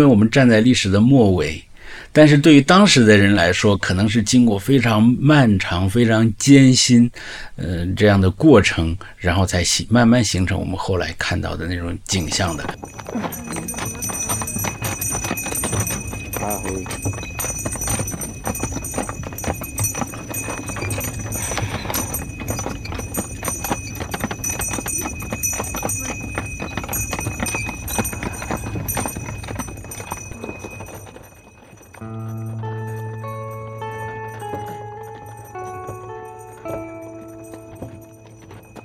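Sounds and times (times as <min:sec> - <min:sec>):
speech: 0:00.0 - 0:14.0, 0:16.4 - 0:17.3
donkey hooves clip-clopping on a road: 0:12.1 - 0:38.8
soft melodic music with sustained tones: 0:32.0 - 0:38.8.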